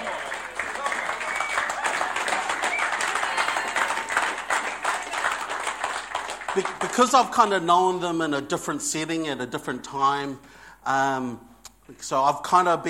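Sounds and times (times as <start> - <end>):
audience applause: 0.0 - 7.4
speech: 6.6 - 12.8.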